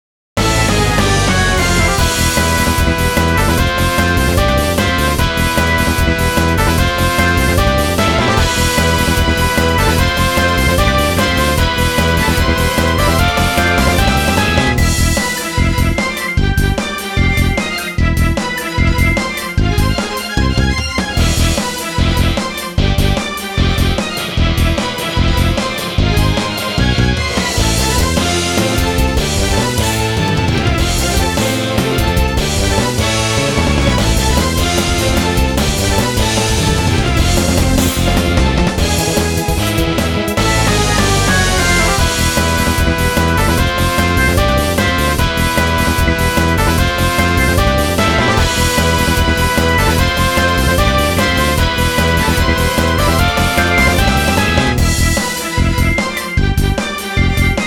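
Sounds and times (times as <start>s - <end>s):
battle background music: 0.4s - 57.6s.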